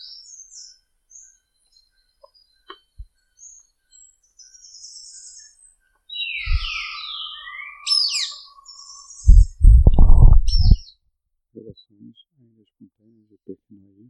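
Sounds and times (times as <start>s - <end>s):
white-rumped hawk calling: 6.2s - 10.8s.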